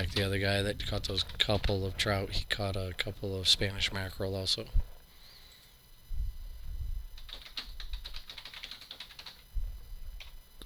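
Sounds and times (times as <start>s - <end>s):
speech: 0.1s - 4.8s
typing on a computer keyboard: 7.2s - 9.5s.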